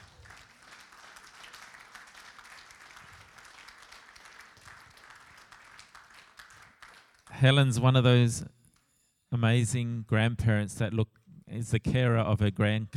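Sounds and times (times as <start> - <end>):
audience clapping: 0.0 - 7.4
speech: 7.4 - 8.6, 9.4 - 12.9.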